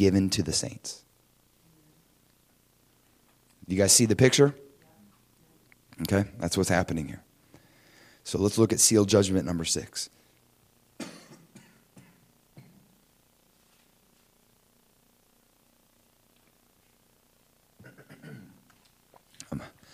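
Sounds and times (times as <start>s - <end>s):
speech: 0.0s - 1.1s, 3.7s - 4.6s, 6.0s - 7.3s, 8.2s - 10.2s
preacher coughing mid-sermon: 11.0s - 12.8s, 17.8s - 18.6s
preacher clearing throat mid-sermon: 11.0s - 12.9s, 17.8s - 18.6s.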